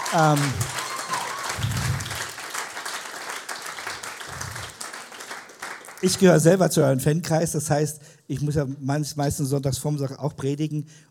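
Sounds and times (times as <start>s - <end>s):
audience applause: 0.0s - 6.2s
speech: 0.1s - 0.8s, 6.0s - 11.0s.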